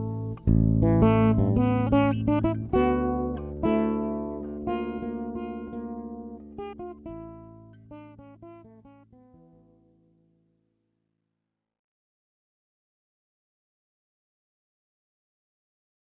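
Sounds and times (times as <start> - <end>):
six-string fretless bass guitar: 0.0 - 10.2.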